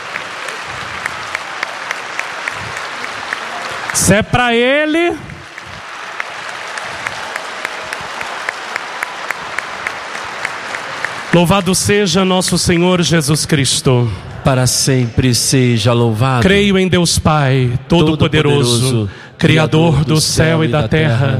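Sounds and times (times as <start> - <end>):
audience applauding: 0.0 - 13.4
speech: 3.9 - 5.3, 11.3 - 21.3.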